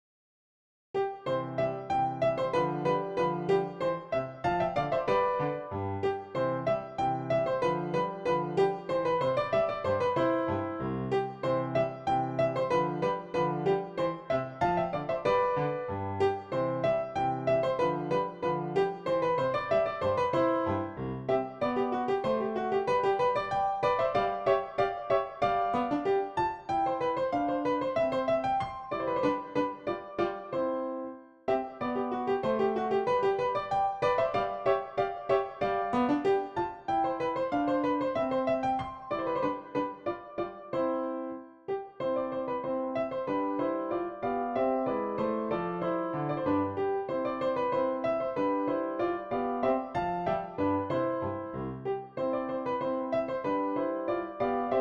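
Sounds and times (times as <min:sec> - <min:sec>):
dance music on a PianoTeq Bechstein piano: 0:01.0 - 0:54.7.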